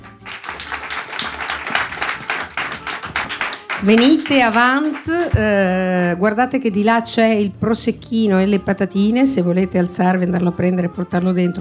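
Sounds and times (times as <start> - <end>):
listeners at a live event hosted by a radio presenter clapping: 0.0 - 5.5
speech: 3.8 - 11.6.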